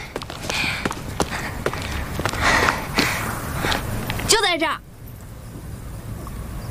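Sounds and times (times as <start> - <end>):
footsteps walking: 0.0 - 4.3
speech: 4.5 - 4.9.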